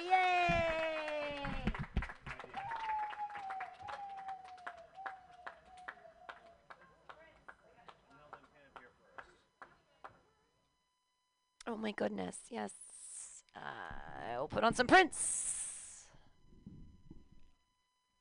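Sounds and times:
audience clapping: 0:00.0 - 0:10.2
speech: 0:11.8 - 0:12.8, 0:14.5 - 0:15.5.

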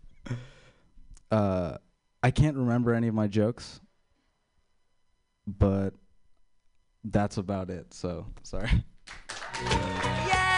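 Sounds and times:
speech: 0:00.3 - 0:00.5, 0:01.3 - 0:03.8, 0:05.5 - 0:06.0, 0:07.0 - 0:10.0
audience clapping: 0:09.0 - 0:10.5.

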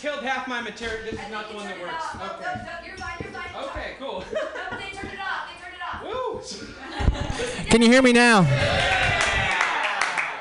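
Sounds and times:
speech: 0:00.0 - 0:05.3, 0:06.4 - 0:09.0
laughter: 0:04.1 - 0:05.0, 0:06.5 - 0:07.7
audience applause: 0:08.5 - 0:10.3.

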